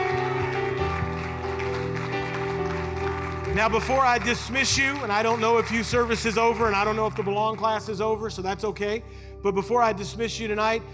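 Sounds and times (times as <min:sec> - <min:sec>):
audience clapping hands in praise: 0:00.0 - 0:08.4
sustained keyboard or organ chords: 0:00.0 - 0:10.9
speech: 0:03.6 - 0:10.9.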